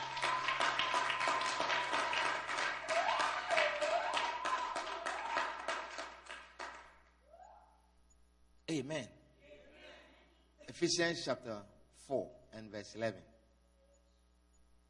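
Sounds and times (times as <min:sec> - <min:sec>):
audience clapping: 0:00.0 - 0:07.1
speech: 0:08.7 - 0:09.2, 0:10.7 - 0:13.3.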